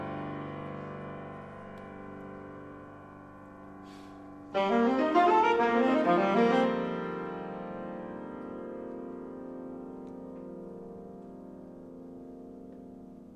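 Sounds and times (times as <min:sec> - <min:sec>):
saxophone music: 0:04.5 - 0:08.1.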